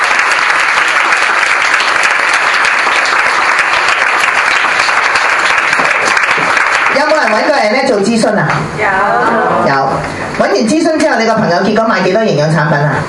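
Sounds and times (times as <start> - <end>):
audience applause: 0.0 - 7.9
speech: 7.0 - 13.0.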